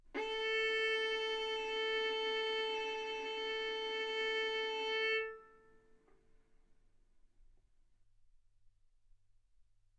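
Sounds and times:
violin arco on A string: 0.0s - 5.8s.

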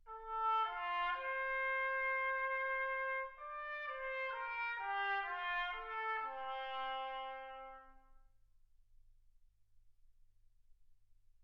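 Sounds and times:
trumpet: 0.0s - 8.3s.

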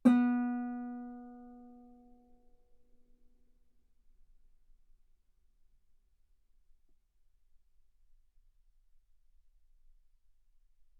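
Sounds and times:
guitar note B3: 0.0s - 1.8s.

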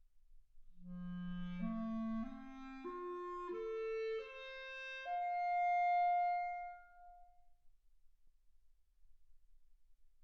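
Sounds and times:
clarinet: 0.8s - 7.4s.

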